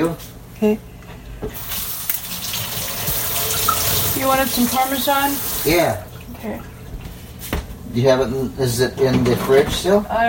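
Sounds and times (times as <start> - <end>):
speech: 0.1 - 1.8, 4.2 - 6.7, 7.9 - 10.2
tap water running while washing blender blades: 1.5 - 7.1.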